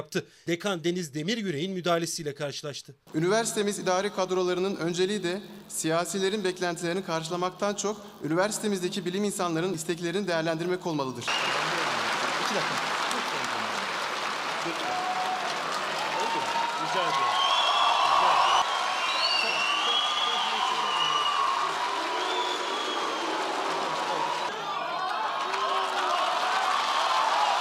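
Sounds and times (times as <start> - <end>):
speech: 0.0 - 11.8, 12.5 - 13.0, 14.6 - 14.9
applause from a large crowd of graduates in protest: 11.3 - 27.5
graduates whooping and shouting: 14.7 - 27.5.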